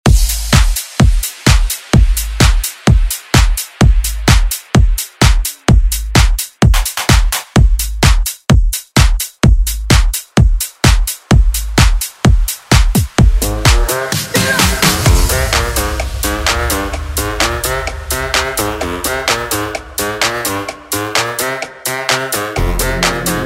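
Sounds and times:
tech house music: 0:00.0 - 0:23.4.

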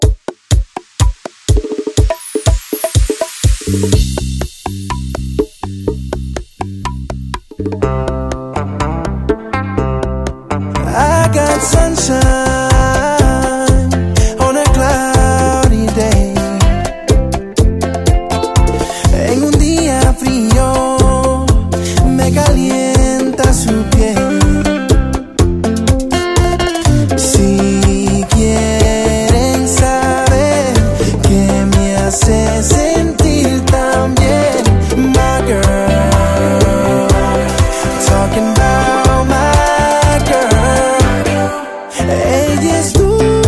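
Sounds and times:
Latin music snippets: 0:00.1 - 0:43.4.

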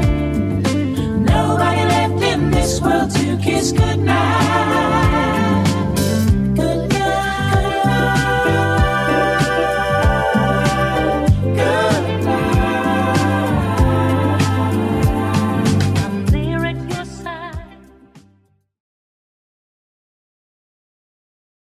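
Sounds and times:
70s drum beat: 0:00.0 - 0:16.6.

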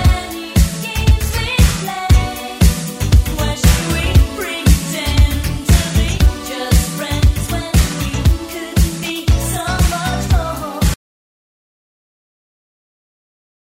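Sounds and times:
eighties drum beat: 0:00.0 - 0:11.0.

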